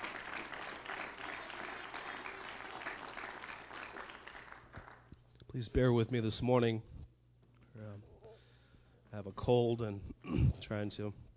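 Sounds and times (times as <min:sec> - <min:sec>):
crowd clapping: 0:00.0 - 0:05.2
speech: 0:05.6 - 0:06.9, 0:09.2 - 0:11.3.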